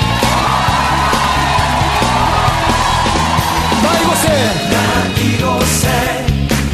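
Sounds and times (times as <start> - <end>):
audience cheering and shouting: 0.0 - 6.6.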